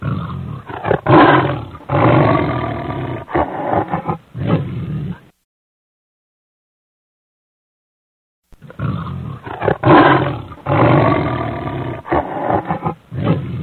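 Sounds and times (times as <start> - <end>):
lion roaring: 0.0 - 5.3, 8.6 - 13.6.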